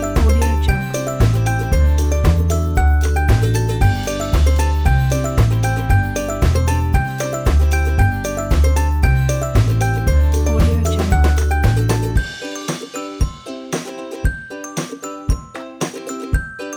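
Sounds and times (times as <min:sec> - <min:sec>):
acoustic indie folk music: 0:00.0 - 0:16.7.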